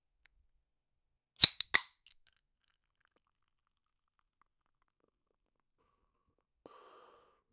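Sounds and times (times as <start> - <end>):
beer bottle cap opening: 1.4 - 1.9
person drinking beer: 1.4 - 1.9.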